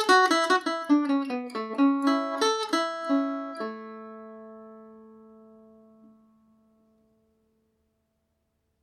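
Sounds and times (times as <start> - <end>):
Irish mandolin slide in A major: 0.0 - 6.5.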